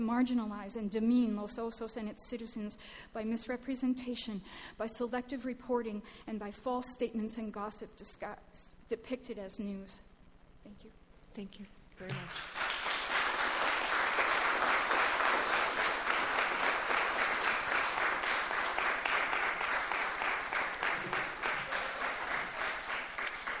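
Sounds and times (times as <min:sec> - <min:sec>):
speech: 0:00.0 - 0:12.6
audience applause: 0:12.2 - 0:23.5.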